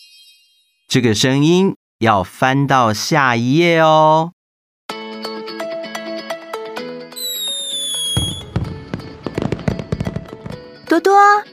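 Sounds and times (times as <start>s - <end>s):
speech: 0.9s - 4.4s
high firework whistle rising: 7.2s - 10.6s
soft melodic tune: 7.2s - 10.7s.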